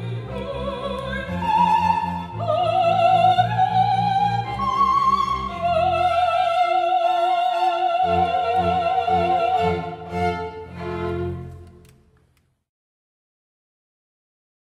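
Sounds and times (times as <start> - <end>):
soprano singing an alleluia: 0.0 - 11.7.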